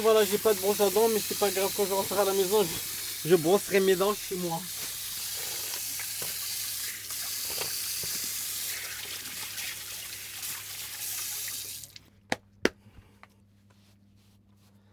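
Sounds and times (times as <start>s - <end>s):
speech: 0.0s - 4.9s
hot water running from a tap: 0.0s - 12.0s.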